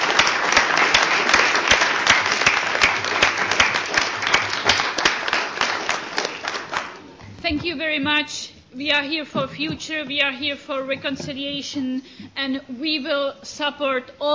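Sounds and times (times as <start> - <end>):
crowd applause: 0.0 - 7.1
speech: 7.5 - 14.3.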